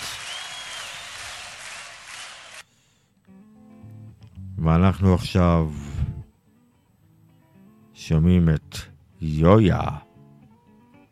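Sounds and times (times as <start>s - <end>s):
audience applause: 0.0s - 2.6s
speech: 4.6s - 5.9s, 8.1s - 10.1s.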